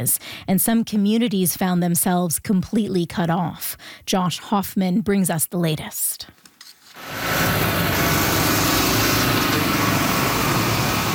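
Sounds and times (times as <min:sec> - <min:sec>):
speech: 0:00.0 - 0:06.4
bulldozers repairing storm-damaged roadways: 0:07.0 - 0:11.1.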